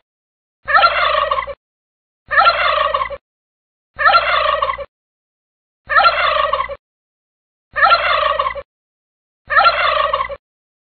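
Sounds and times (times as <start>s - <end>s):
turkey calling: 0.7s - 1.6s, 2.3s - 3.2s, 4.0s - 4.9s, 5.9s - 6.8s, 7.7s - 8.7s, 9.5s - 10.4s.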